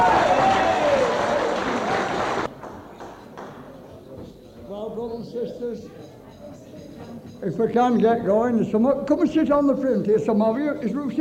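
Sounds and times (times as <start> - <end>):
audience clapping: 0.0 - 3.8
speech: 5.6 - 6.2, 7.4 - 11.1.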